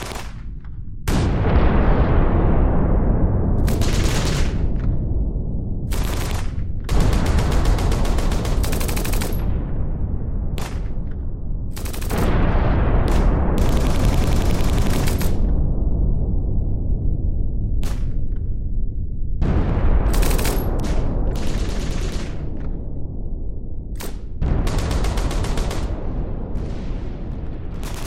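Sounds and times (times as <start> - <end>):
WWII battlefield gunfire: 0.0 - 2.2, 3.6 - 5.0, 5.9 - 9.6, 10.5 - 15.6, 19.4 - 22.8, 24.0 - 28.0
WWII battlefield explosions: 0.0 - 28.0.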